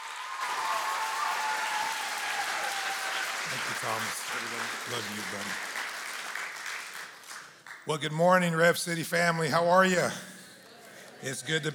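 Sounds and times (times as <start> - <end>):
church congregation applauding to welcome a pastor: 0.0 - 8.5
speech: 3.5 - 5.7, 7.9 - 10.3, 11.2 - 11.7.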